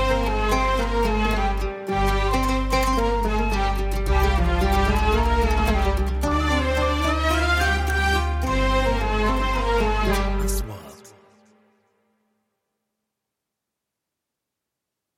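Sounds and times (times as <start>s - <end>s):
patriotic music: 0.0s - 11.6s.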